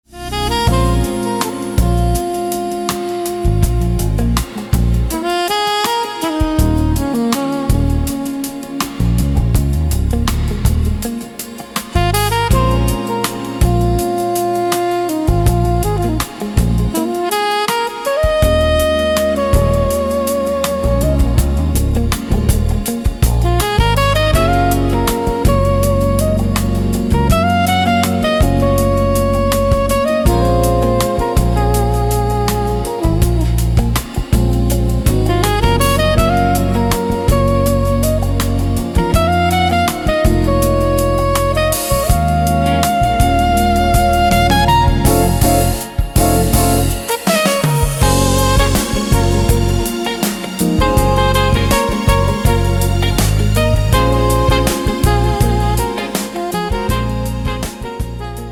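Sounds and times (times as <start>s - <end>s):
smooth lounge jazz: 0.0s - 58.5s.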